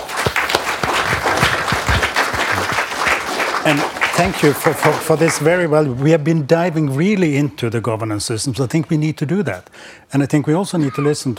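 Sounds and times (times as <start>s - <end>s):
audience applause: 0.0s - 5.6s
speech: 3.6s - 11.3s.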